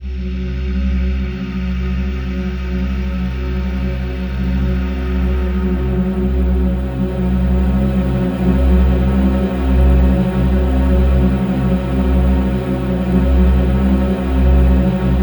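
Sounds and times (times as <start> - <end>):
composite ethereal ambient atmosphere: 0.1 - 15.2.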